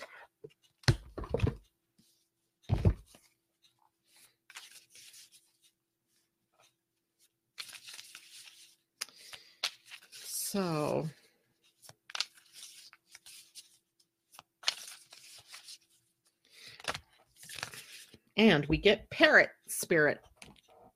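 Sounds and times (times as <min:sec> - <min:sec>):
animal spirit oracle deck cards rustling and sliding: 0:04.1 - 0:05.8, 0:07.2 - 0:10.4, 0:11.6 - 0:18.2
speech: 0:10.6 - 0:11.2, 0:18.4 - 0:20.3.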